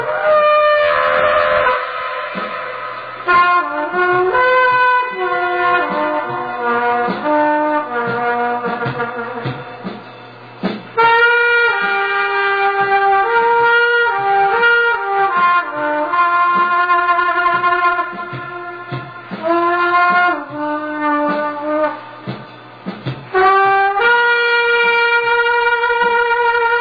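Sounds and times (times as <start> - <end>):
blowing: 0.0 - 26.8.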